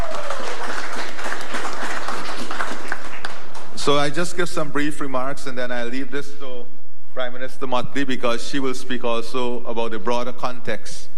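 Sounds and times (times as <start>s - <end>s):
audience applause: 0.0s - 3.8s
speech: 3.9s - 11.0s.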